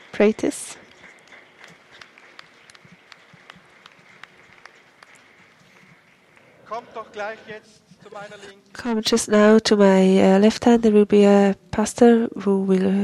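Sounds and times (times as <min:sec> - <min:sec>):
audience clapping: 0:00.0 - 0:08.4
speech: 0:00.2 - 0:00.8, 0:06.8 - 0:13.0.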